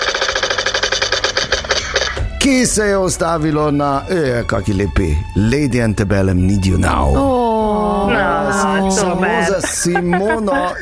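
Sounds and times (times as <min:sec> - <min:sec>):
Valentine's prize wheel spinning with rattling clicks: 0:00.0 - 0:02.2
speech: 0:02.4 - 0:10.7
laughter: 0:07.7 - 0:10.7.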